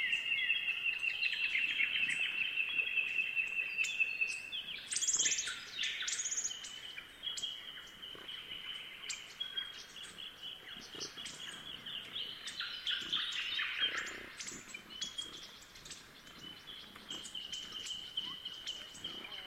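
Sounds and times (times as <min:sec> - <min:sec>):
thornbills chirping: 0:00.0 - 0:19.4
magpies calling: 0:10.6 - 0:19.4.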